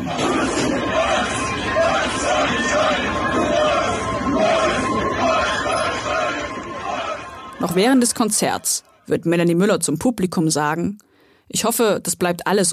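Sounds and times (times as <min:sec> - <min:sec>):
constant roar of voices: 0:00.0 - 0:07.4
large concert crowd chanting a battle cry: 0:00.0 - 0:09.1
speech: 0:07.6 - 0:12.7.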